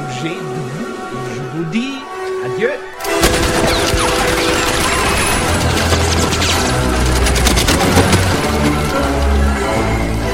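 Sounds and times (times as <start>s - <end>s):
speech: 0.2s - 0.6s, 1.6s - 3.2s
heavy gunfire from a film scene, soldiers shooting through a farmhouse floor: 3.0s - 9.2s
crashing impacts of shots through a farmhouse floor: 3.0s - 10.2s.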